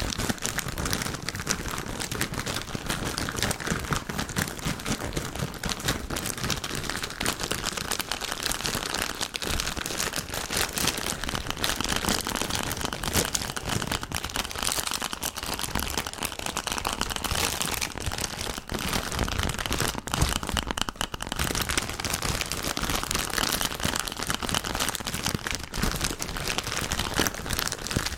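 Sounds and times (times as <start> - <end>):
candy wrappers crinkling: 0.0 - 28.1.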